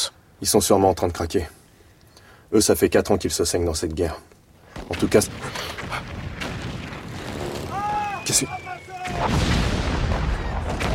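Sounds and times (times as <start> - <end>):
speech: 0.4 - 1.6, 2.5 - 6.1, 8.3 - 9.3
wartime artillery fire booms: 4.8 - 10.9
high whistling tones: 7.8 - 9.2.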